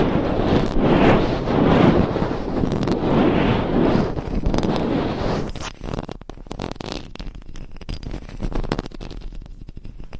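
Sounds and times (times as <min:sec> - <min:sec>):
long nails scratching a binaural microphone: 0:00.0 - 0:10.1.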